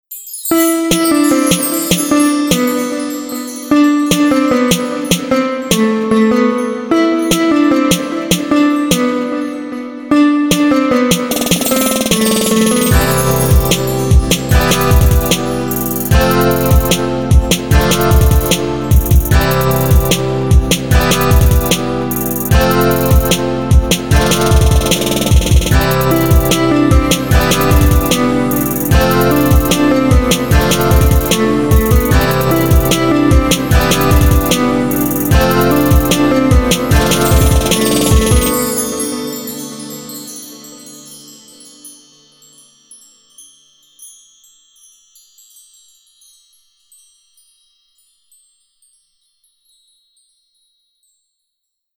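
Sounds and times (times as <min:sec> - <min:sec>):
guitar: 0:00.6 - 0:41.8.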